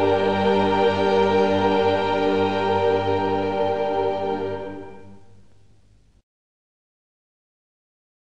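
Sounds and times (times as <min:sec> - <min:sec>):
canticle: 0:00.0 - 0:06.2.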